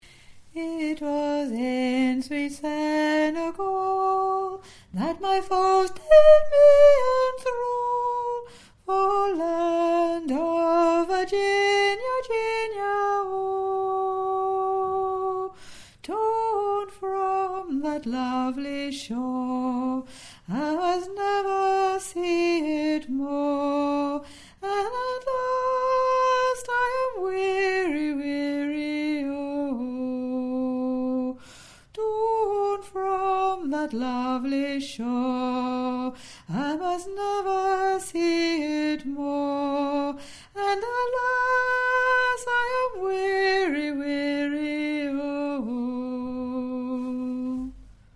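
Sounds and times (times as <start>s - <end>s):
soprano singing a lament: 0.5s - 47.9s.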